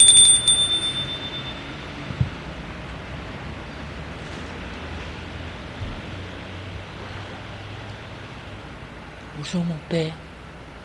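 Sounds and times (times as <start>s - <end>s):
doorbell ringing: 0.0s - 2.1s
speech: 9.4s - 10.3s.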